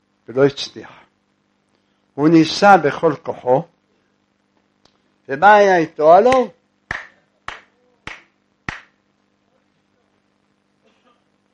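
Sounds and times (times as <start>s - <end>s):
speech: 0.3s - 1.0s, 2.2s - 3.7s, 5.3s - 6.6s
hand clapping: 6.3s - 9.0s.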